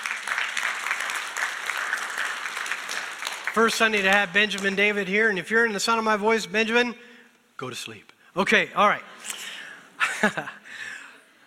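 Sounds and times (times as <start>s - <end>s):
audience applause: 0.0s - 5.0s
speech: 3.6s - 9.1s, 10.2s - 10.6s
laughter: 10.0s - 10.7s.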